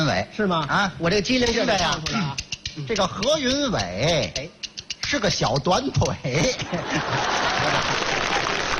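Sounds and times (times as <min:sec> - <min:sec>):
speech: 0:00.1 - 0:08.4
laughter: 0:06.3 - 0:08.7
audience applause during a Chinese crosstalk xiangsheng comedy performance: 0:07.0 - 0:08.7.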